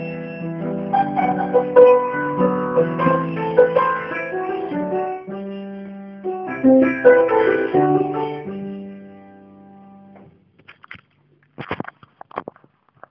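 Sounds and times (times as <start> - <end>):
polska dance tune: 0.0 - 9.2.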